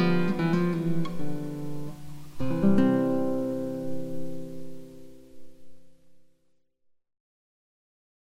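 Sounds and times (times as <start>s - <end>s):
solo guitar: 0.0s - 6.5s.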